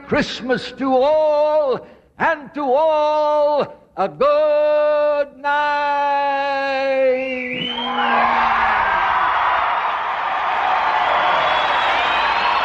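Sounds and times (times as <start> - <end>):
speech: 0.1 - 8.7
crowd cheering, whooping and yelling after a performance: 7.6 - 12.6.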